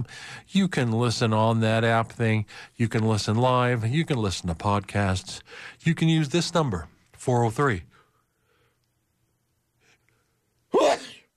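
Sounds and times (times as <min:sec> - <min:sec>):
speech: 0:00.0 - 0:07.9
person sneezing: 0:10.7 - 0:11.3.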